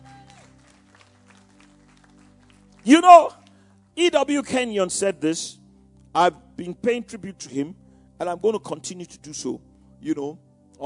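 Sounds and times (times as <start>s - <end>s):
church congregation clapping as an offering: 0.0s - 3.6s
speech: 2.8s - 3.4s, 4.0s - 10.8s.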